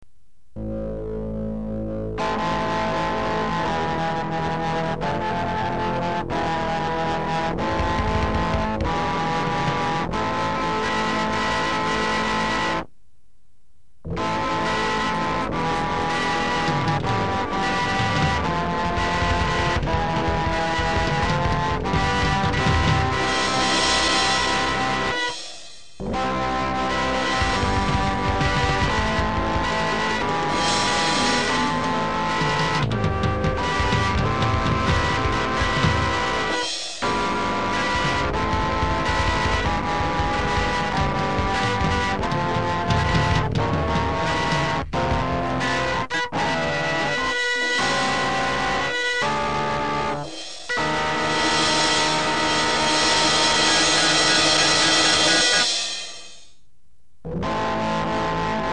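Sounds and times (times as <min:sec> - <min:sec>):
organ grinder barrel organ: 0:00.6 - 0:12.9, 0:14.1 - 0:56.4, 0:57.3 - 0:58.7.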